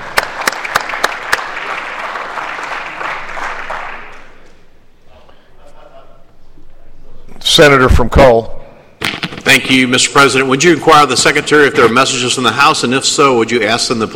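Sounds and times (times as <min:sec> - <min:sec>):
senators applauding in the Senate chamber: 0:00.0 - 0:04.6
speech: 0:07.6 - 0:08.6, 0:09.5 - 0:14.1.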